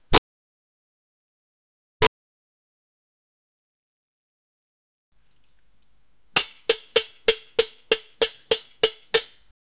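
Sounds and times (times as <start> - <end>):
beat by wooden rod stick: 6.4 - 9.5.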